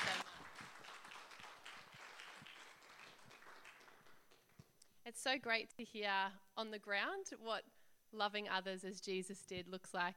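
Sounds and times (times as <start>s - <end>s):
audience clapping: 0.0s - 4.8s
speech: 5.1s - 10.1s.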